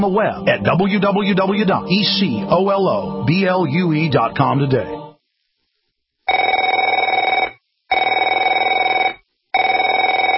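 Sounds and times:
speech: 0.0 - 5.0
telephone ringing: 6.3 - 10.3.

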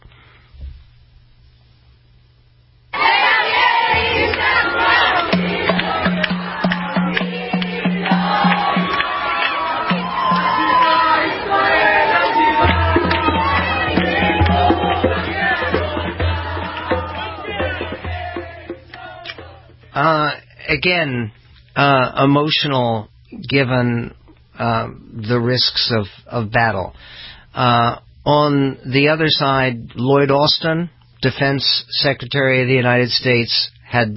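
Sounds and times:
crowd of Israelis at the airport cheering and shouting a welcome for returning soldiers: 3.0 - 19.7
speech: 20.8 - 34.1.

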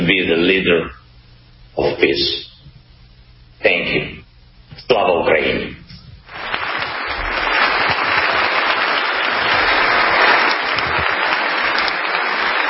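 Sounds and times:
speech: 0.1 - 1.0, 1.8 - 2.5, 3.6 - 4.1, 4.8 - 5.8
standing ovation applause: 6.3 - 12.6.

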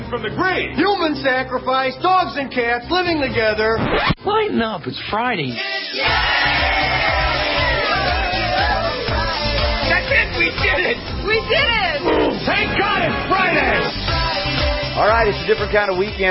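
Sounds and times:
speech: 0.1 - 7.2, 10.1 - 14.2, 15.0 - 16.2
children cheering: 6.0 - 9.3.

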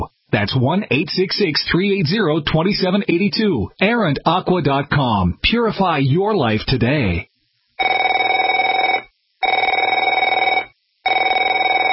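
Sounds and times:
speech: 0.3 - 8.0
telephone ringing: 7.8 - 11.9.

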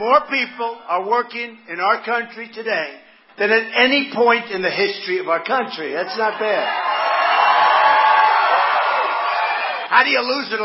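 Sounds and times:
speech: 0.0 - 6.9, 9.9 - 10.6
crowd shouting USA before a presidential speech: 6.0 - 10.0.

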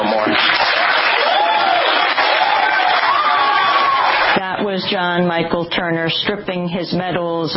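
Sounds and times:
crowd applauding: 0.2 - 4.4
speech: 4.9 - 7.5.

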